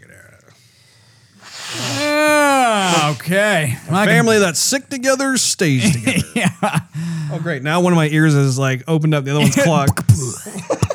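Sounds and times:
nose blowing: 0:01.4 - 0:03.9, 0:09.4 - 0:10.9
speech: 0:03.3 - 0:10.7
laughter: 0:05.8 - 0:07.3, 0:09.4 - 0:10.9.

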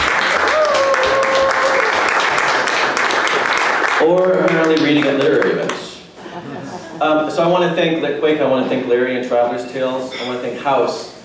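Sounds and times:
audience applause welcoming a speaker at a literary event: 0:00.0 - 0:05.8
speech: 0:04.0 - 0:05.8, 0:07.0 - 0:11.1
laughter: 0:06.2 - 0:07.4.

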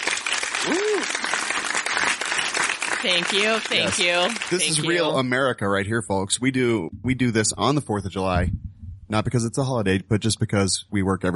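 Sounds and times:
applause: 0:00.0 - 0:05.1
speech: 0:00.6 - 0:01.4, 0:03.0 - 0:11.3.

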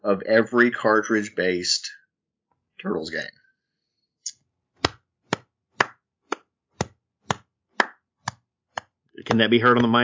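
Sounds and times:
speech: 0:00.0 - 0:02.0, 0:02.8 - 0:03.4, 0:09.2 - 0:10.0
golf clap: 0:04.8 - 0:10.0.

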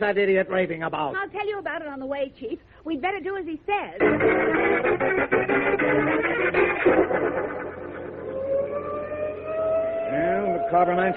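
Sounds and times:
speech: 0:00.0 - 0:07.5, 0:10.7 - 0:11.1
fire engine sirens wailing: 0:06.8 - 0:11.1.

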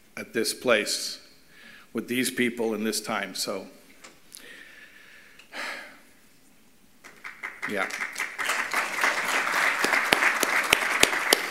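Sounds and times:
speech: 0:00.2 - 0:01.2, 0:01.9 - 0:03.8, 0:07.7 - 0:08.1
audience clapping after a talk: 0:07.0 - 0:11.4.

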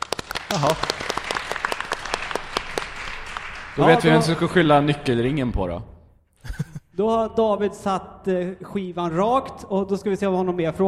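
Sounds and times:
audience applause: 0:00.0 - 0:04.7
laughter: 0:00.5 - 0:01.0, 0:06.4 - 0:06.9
speech: 0:00.5 - 0:01.2, 0:03.8 - 0:05.9, 0:07.0 - 0:10.8.

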